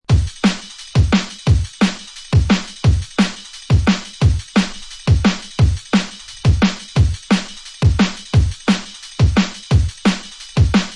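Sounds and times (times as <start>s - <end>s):
kick and roll drum beats: 0.0s - 10.9s.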